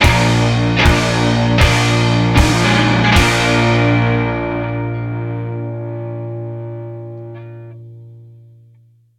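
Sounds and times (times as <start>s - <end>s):
death music sting: 0.0s - 7.0s.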